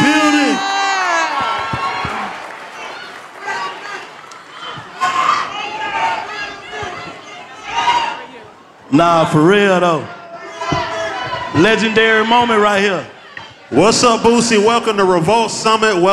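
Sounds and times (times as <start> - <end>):
audience cheering and applauding at a live summit event: 0.0 - 8.2
speech: 8.9 - 10.2, 11.6 - 16.1.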